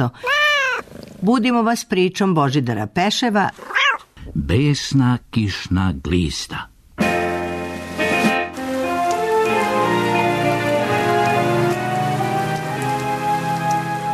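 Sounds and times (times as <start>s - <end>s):
speech: 0.0s - 0.3s, 1.2s - 3.7s, 4.4s - 6.7s
rain falling: 6.3s - 14.1s.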